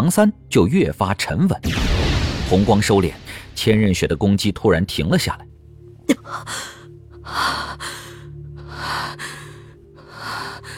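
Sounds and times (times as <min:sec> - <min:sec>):
speech: 0:00.0 - 0:05.5, 0:06.1 - 0:08.1
heavy panting breaths: 0:06.5 - 0:10.7.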